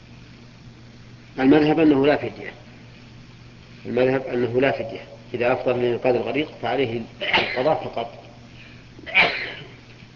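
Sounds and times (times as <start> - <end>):
faint hum: 0.0 - 10.1
speech: 1.4 - 2.7, 3.8 - 8.2
sneeze during a religious lecture: 7.2 - 7.7, 9.0 - 9.8.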